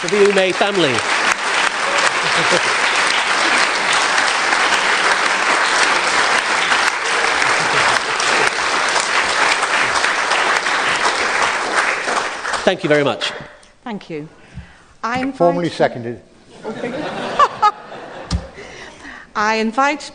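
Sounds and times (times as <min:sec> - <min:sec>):
speech: 0:00.0 - 0:01.2, 0:02.4 - 0:02.9, 0:12.7 - 0:14.4, 0:15.0 - 0:17.0, 0:19.4 - 0:20.1
audience applause: 0:00.0 - 0:13.1
laughter: 0:01.7 - 0:11.4, 0:16.5 - 0:19.2.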